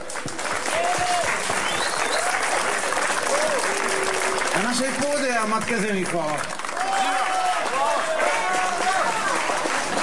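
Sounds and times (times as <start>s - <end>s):
crowd applause: 0.0s - 10.0s
faint whistles and cheering: 0.6s - 4.7s, 6.7s - 9.8s
speech: 4.7s - 7.2s.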